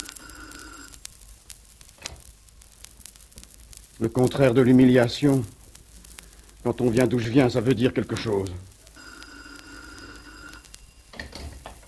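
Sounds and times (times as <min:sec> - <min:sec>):
telephone ringing: 0:00.0 - 0:00.9, 0:09.0 - 0:11.4
speech: 0:04.0 - 0:05.6, 0:06.6 - 0:08.7.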